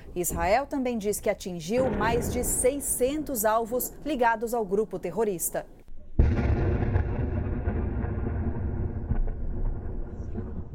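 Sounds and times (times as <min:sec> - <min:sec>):
speech: 0:00.2 - 0:05.8
Israeli war tank firing at a car: 0:06.2 - 0:10.7.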